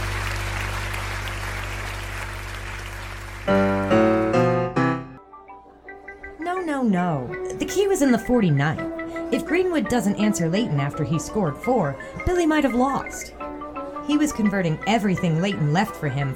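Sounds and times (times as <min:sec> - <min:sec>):
hometown crowd applauding at billiards match: 0:00.0 - 0:04.6
speech: 0:06.9 - 0:13.4, 0:14.1 - 0:16.3.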